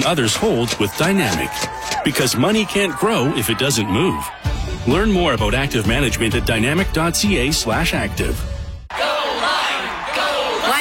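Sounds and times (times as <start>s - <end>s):
crowd cheering: 0.0s - 5.9s, 8.9s - 10.7s
speech: 0.0s - 8.5s.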